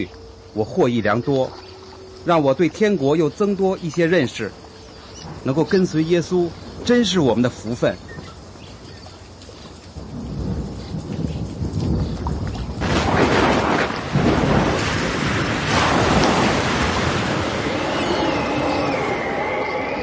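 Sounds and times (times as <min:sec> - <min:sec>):
speech: 0:00.0 - 0:04.6, 0:05.2 - 0:08.1
rain: 0:00.0 - 0:20.0
thunder: 0:10.0 - 0:19.8.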